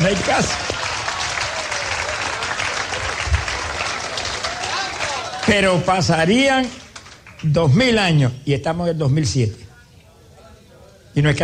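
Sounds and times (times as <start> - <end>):
speech: 0.0 - 0.7, 5.5 - 6.8, 7.4 - 9.6, 11.2 - 11.4
faint murmur of voices: 0.0 - 6.1, 9.2 - 11.4
audience applause: 0.0 - 7.7.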